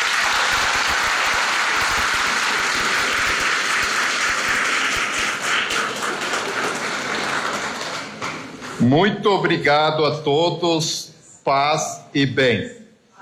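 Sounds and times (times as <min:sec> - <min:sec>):
warm round of applause: 0:00.0 - 0:08.8
speech: 0:08.8 - 0:12.8.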